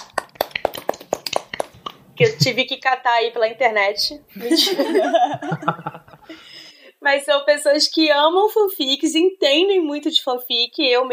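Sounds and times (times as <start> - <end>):
one person clapping hands: 0.0 - 2.0
speech: 2.2 - 6.4, 7.0 - 11.1
laughter: 4.3 - 6.3.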